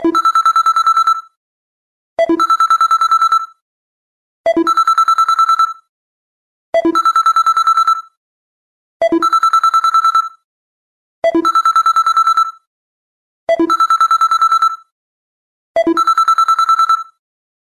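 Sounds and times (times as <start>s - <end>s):
phone bell ringtone: 0.0s - 1.3s, 2.3s - 3.6s, 4.6s - 5.8s, 6.8s - 8.1s, 9.1s - 10.4s, 11.3s - 12.7s, 13.6s - 14.9s, 15.8s - 17.2s.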